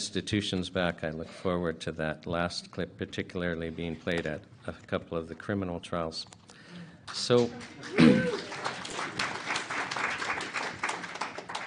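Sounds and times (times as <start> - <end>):
speech: 0.0 - 6.4, 7.1 - 8.7
audience applause at a public inquiry hearing in Winnipeg: 7.1 - 11.6.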